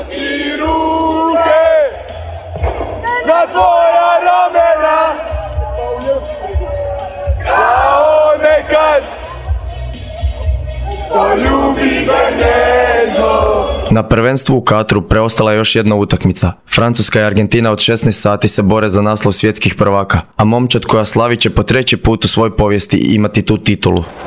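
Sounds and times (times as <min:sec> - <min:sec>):
large crowd singing a chanted melody: 0:00.0 - 0:10.0, 0:10.6 - 0:13.9
crowd shouts and cheers: 0:00.6 - 0:11.4
speech: 0:11.1 - 0:24.2.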